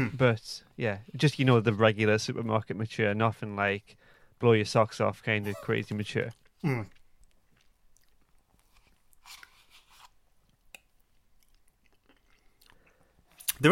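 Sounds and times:
speech: 0.0s - 7.0s
person chewing food: 6.0s - 13.6s.

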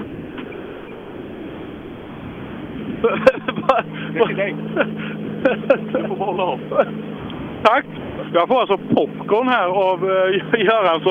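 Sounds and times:
Volvo 240 engine rumble at the finish of a rally stage: 0.0s - 11.1s
laughter: 3.0s - 7.0s
speech: 3.0s - 11.1s.

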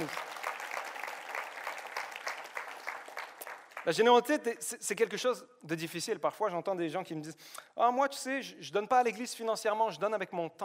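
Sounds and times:
church audience applauding: 0.0s - 4.2s
speech: 3.8s - 10.6s.

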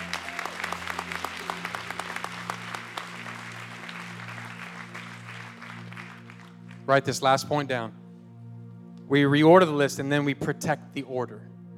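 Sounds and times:
audience clapping hands: 0.0s - 7.2s
speech: 6.9s - 8.0s, 9.1s - 11.5s.

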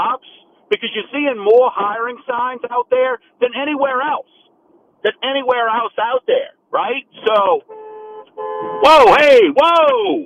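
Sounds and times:
man speaking loudly: 0.0s - 4.3s, 5.0s - 7.7s, 8.6s - 10.2s
speech: 0.7s - 4.4s, 5.0s - 7.8s, 8.8s - 10.2s
car horn toots on the road: 7.5s - 9.4s.

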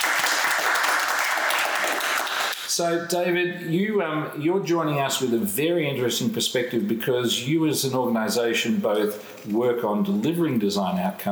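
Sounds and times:
audience applause: 0.0s - 2.7s
speech: 2.8s - 11.3s.

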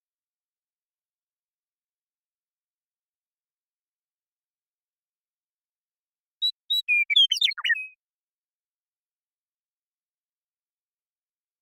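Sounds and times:
western meadowlark song: 6.4s - 8.0s.

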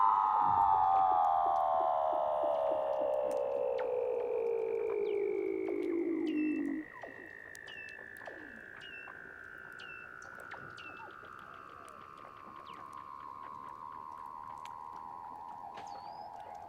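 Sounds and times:
fainter higher Weddell seal glide underwater: 0.0s - 6.8s
Weddell seal descending whistle underwater: 0.0s - 7.3s
Weddell seal clicks and chirps underwater: 0.4s - 16.6s.

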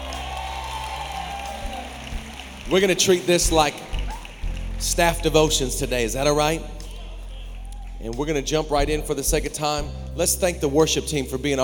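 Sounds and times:
audience clapping: 0.0s - 8.0s
speech: 2.7s - 4.0s, 4.8s - 6.8s, 8.0s - 11.6s.

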